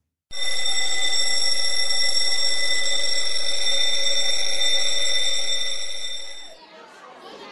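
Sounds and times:
school bell ringing: 0.3 - 6.6.

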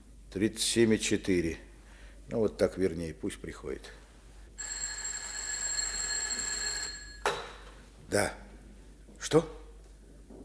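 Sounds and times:
speech: 0.3 - 1.7, 2.3 - 4.0, 8.1 - 8.4, 9.2 - 9.6
telephone ringing with electric bell tone: 4.6 - 7.3.

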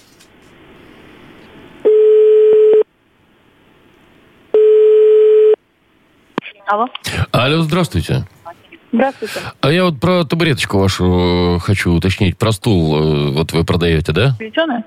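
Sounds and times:
telephone dialing tones and short beep: 1.9 - 2.8, 4.6 - 5.6
speech: 6.7 - 8.4, 8.9 - 14.8.

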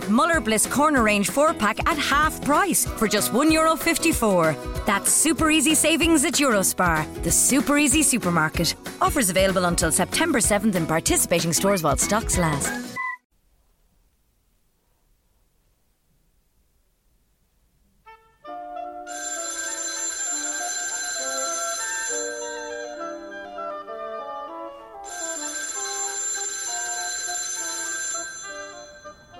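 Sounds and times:
speech: 0.1 - 12.9
telephone ringing: 19.1 - 23.7, 25.0 - 29.3.

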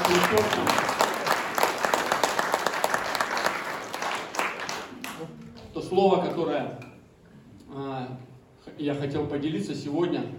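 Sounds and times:
audience applause: 0.0 - 5.4
speech: 0.3 - 0.8, 5.9 - 6.8, 8.1 - 10.3.

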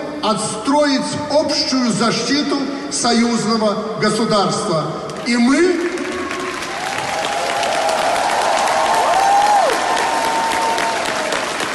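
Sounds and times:
speech: 0.2 - 5.9
thin, sparse audience applause: 5.7 - 11.7.

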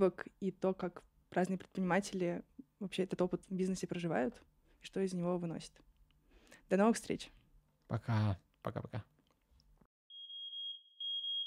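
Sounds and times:
speech: 0.0 - 5.9, 6.7 - 9.1
fire alarm beeping: 10.1 - 11.4.

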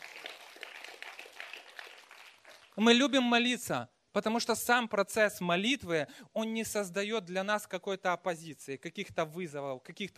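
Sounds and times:
loud applause: 0.0 - 2.8
speech: 2.8 - 10.1.

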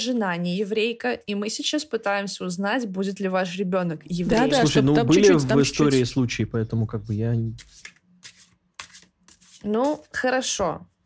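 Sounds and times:
speech: 0.0 - 8.0, 9.6 - 10.9
tarot cards being shuffled: 7.6 - 10.1.

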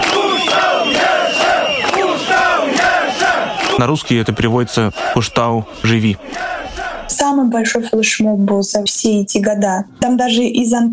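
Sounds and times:
large crowd chanting a slogan: 0.0 - 7.9
speech: 3.8 - 6.6, 7.2 - 10.9.

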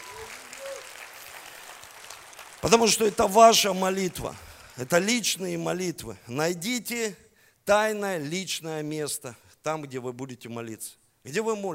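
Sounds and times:
audience applause: 0.0 - 4.7
speech: 2.6 - 11.7.

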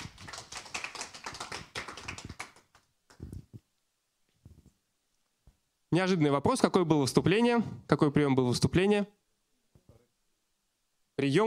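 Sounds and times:
audience applause: 0.0 - 3.2
speech: 5.9 - 9.2, 11.2 - 11.4.

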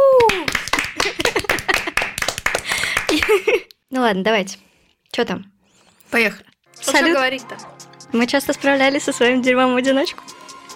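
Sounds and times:
small group clapping hands: 0.0 - 3.6
speech: 3.4 - 5.5, 6.1 - 10.4.

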